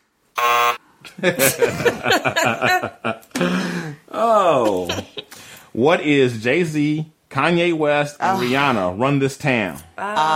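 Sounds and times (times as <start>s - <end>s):
quiz game buzzer: 0.4s - 0.8s
laughter: 1.1s - 3.9s, 4.6s - 5.3s
speech: 1.2s - 3.6s, 5.8s - 10.3s.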